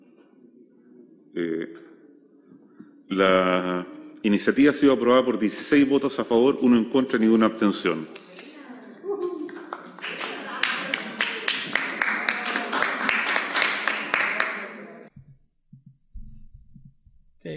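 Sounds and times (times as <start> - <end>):
murmured voices: 0.0 - 15.1
speech: 1.4 - 2.0, 3.1 - 8.2
applause after a vote: 8.1 - 14.8
faint low thumps: 15.1 - 17.5.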